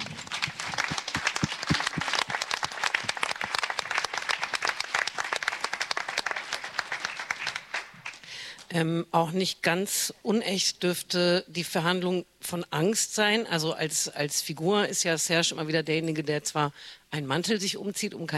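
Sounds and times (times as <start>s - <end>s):
audience applause: 0.0s - 8.2s
speech: 8.8s - 18.3s.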